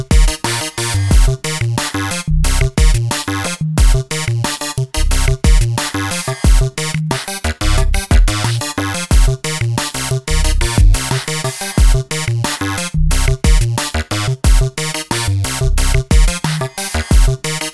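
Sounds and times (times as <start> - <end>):
drums: 0.0 - 17.7.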